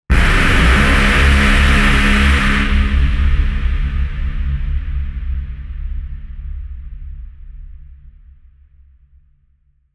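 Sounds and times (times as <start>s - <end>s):
rising tension build: 0.1s - 3.8s
impact hit: 0.1s - 4.4s.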